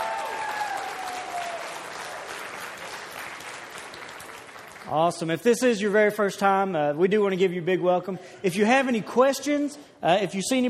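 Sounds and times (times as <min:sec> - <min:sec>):
church congregation clapping to welcome first-time guests: 0:00.0 - 0:05.4
speech: 0:04.8 - 0:10.6.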